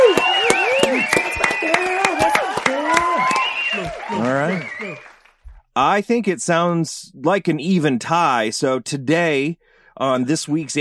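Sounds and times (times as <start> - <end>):
audience applause: 0.0 - 5.5
speech: 5.8 - 10.7.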